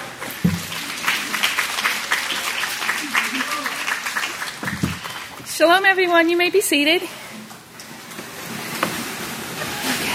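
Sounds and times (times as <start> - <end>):
standing crowd applauding at a religious gathering: 0.4 - 5.5
speech: 5.6 - 7.2.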